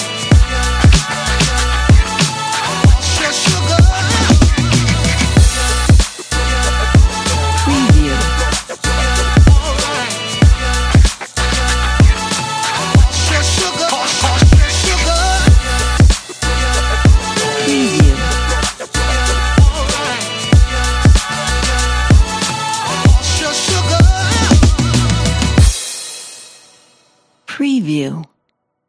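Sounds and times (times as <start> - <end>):
stylish hip hop music: 0.0 - 25.9.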